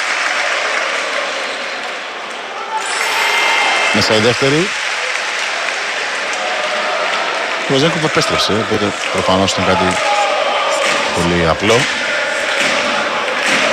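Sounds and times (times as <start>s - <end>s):
basketball arena crowd applauding: 0.0s - 13.7s
speech: 4.0s - 4.8s, 7.7s - 10.2s, 11.2s - 12.0s.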